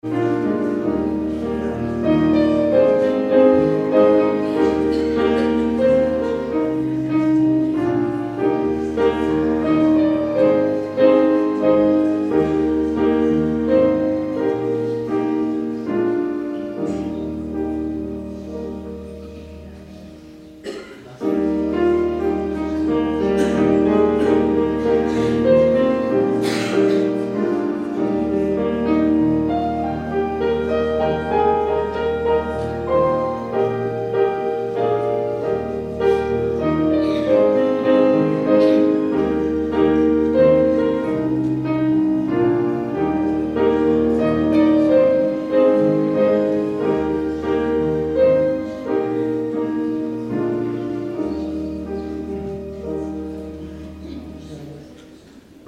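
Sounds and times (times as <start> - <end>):
prelude music: 0.0 - 55.6.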